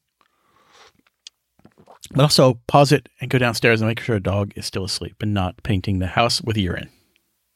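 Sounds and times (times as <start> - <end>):
person sipping coffee: 0.2 - 2.2
speech: 2.1 - 7.0.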